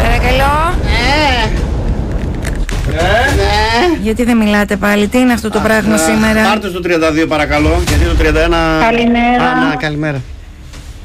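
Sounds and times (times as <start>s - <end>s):
bomb explosion sound effect in a Greek radio quiz game: 0.0s - 5.2s, 7.4s - 9.8s
speech: 4.0s - 10.4s.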